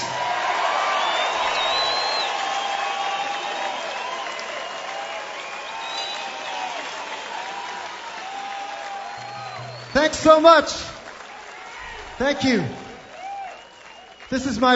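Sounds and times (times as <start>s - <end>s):
concert audience clapping at a rock show: 0.0s - 14.7s
crowd cheering at a rock show: 0.0s - 14.7s
high whistles from the audience: 0.9s - 7.2s, 8.2s - 10.1s, 13.1s - 14.4s
speech: 10.0s - 10.9s, 12.2s - 12.8s, 14.3s - 14.7s.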